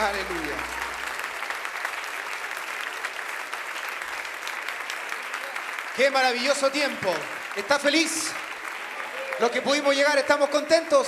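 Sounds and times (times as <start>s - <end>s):
audience applause: 0.0s - 11.0s
speech: 6.0s - 8.5s, 9.4s - 11.0s.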